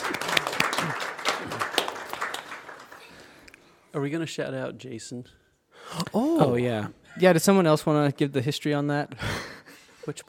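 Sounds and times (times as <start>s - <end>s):
crowd applauding: 0.0s - 3.5s
speech: 3.9s - 9.4s, 10.1s - 10.2s.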